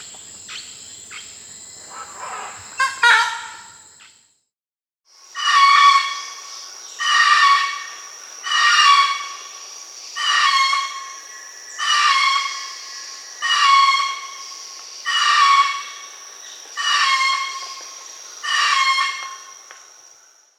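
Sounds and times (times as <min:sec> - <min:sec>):
red-throated caracara calling: 0:01.8 - 0:03.8, 0:05.4 - 0:09.6, 0:10.2 - 0:16.2, 0:16.8 - 0:19.6.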